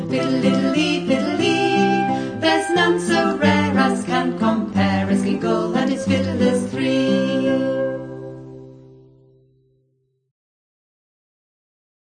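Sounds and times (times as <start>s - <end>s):
piccolo melody: 0.1s - 4.2s, 5.1s - 8.6s.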